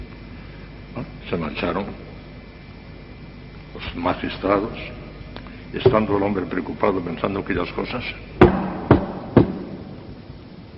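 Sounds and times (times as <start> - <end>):
speech: 1.0 - 2.1, 3.8 - 5.0, 5.7 - 8.6
knocking on a door: 5.8 - 6.2, 8.4 - 9.8.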